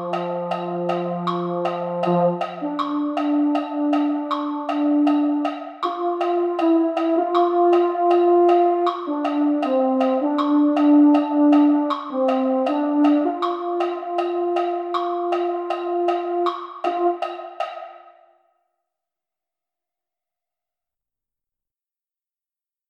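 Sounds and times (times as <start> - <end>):
baritone: 0.0 - 17.8.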